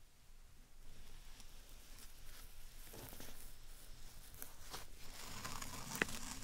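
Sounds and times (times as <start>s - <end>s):
slime and sand being handled: 0.8s - 6.4s.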